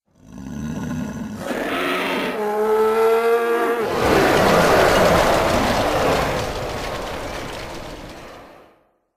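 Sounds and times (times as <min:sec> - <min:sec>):
ogre scream: 0:01.4 - 0:06.9.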